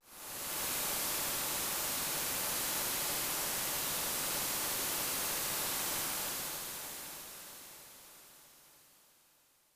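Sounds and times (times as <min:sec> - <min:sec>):
rain: 0:00.2 - 0:08.0.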